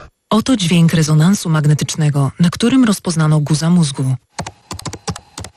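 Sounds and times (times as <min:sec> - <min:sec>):
speech: 0:00.4 - 0:04.3
laptop keyboard typing: 0:04.3 - 0:05.5.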